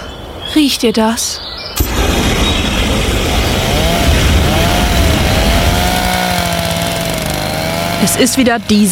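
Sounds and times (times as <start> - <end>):
speech: 0.6 - 2.4, 8.0 - 8.8
pressure washers running in gardens: 2.9 - 8.8.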